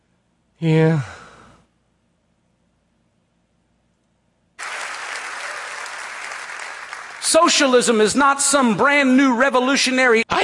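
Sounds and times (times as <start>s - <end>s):
speech: 0.6s - 1.1s, 7.5s - 10.4s
crowd in San Antonio hooting: 4.6s - 7.4s
crowd in San Antonio clapping: 4.6s - 8.0s.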